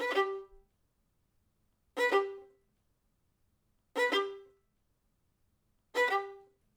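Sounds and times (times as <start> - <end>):
violin: 0.0 - 0.7, 2.0 - 2.6, 3.9 - 4.6, 5.9 - 6.6.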